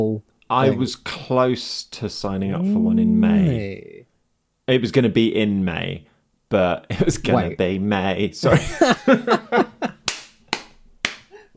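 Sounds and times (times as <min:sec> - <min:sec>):
speech: 0:00.0 - 0:04.0, 0:04.7 - 0:09.7
voiced laughter: 0:08.5 - 0:10.1
one person clapping: 0:10.0 - 0:11.4.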